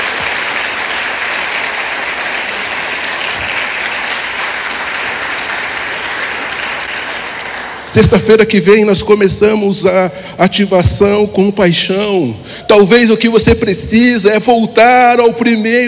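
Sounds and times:
audience applause: 0:00.0 - 0:08.0
speech: 0:07.9 - 0:15.8.

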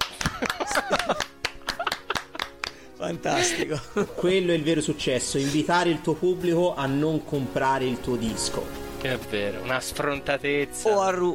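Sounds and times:
applause sound effect: 0:00.0 - 0:02.8
laughter: 0:00.0 - 0:04.4
speech: 0:03.0 - 0:11.3.

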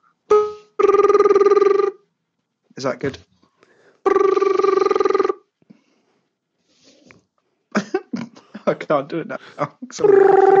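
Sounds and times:
person imitating a ringing telephone: 0:00.8 - 0:02.0, 0:04.1 - 0:05.4, 0:10.0 - 0:10.5
speech: 0:02.8 - 0:03.3, 0:08.7 - 0:10.5.

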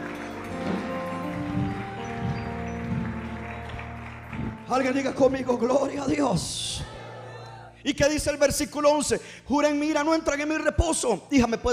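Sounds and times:
audience applauding: 0:00.0 - 0:06.2
speech: 0:04.7 - 0:06.9, 0:07.8 - 0:11.7.

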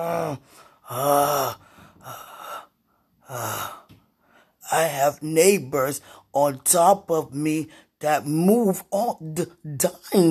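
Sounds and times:
speech: 0:00.0 - 0:02.2, 0:04.7 - 0:10.2
person groaning: 0:00.0 - 0:03.9.

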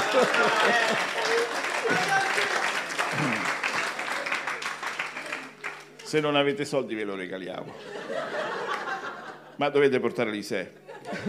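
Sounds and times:
laughter: 0:00.0 - 0:04.6, 0:07.7 - 0:09.6, 0:10.9 - 0:11.2
audience applause: 0:00.0 - 0:06.0
speech: 0:00.2 - 0:02.2, 0:06.1 - 0:08.0, 0:09.6 - 0:11.2.

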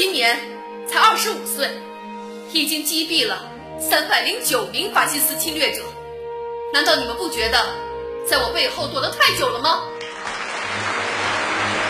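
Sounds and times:
speech: 0:00.2 - 0:01.9, 0:02.5 - 0:06.0, 0:06.7 - 0:09.9
crowd applause: 0:10.0 - 0:11.8.

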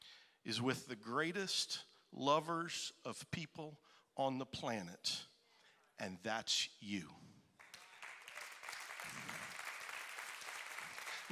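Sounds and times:
speech: 0:00.4 - 0:05.3, 0:06.0 - 0:07.4
crowd audience clapping: 0:07.6 - 0:11.3.

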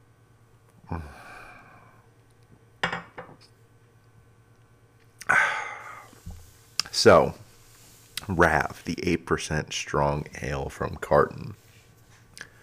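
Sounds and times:
speech: 0:00.9 - 0:01.3, 0:07.0 - 0:07.4, 0:08.3 - 0:11.6
deep heavy breath out: 0:00.9 - 0:02.0, 0:05.2 - 0:06.3.

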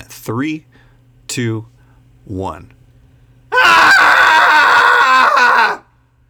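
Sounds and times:
speech: 0:00.2 - 0:02.8
crowd screaming together: 0:03.6 - 0:05.8.

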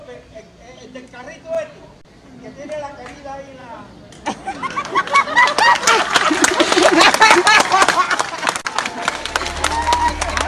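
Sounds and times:
laughter: 0:04.2 - 0:10.4
crowd applauding: 0:04.6 - 0:10.4.

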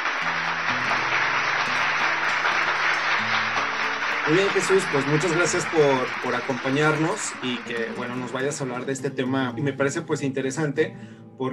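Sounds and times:
audience applause: 0:00.0 - 0:09.0
speech: 0:04.3 - 0:11.5.

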